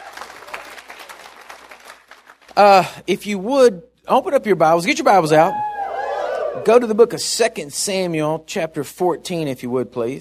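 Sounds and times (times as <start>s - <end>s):
audience applause: 0.0s - 2.6s
speech: 2.6s - 5.7s, 6.6s - 10.2s.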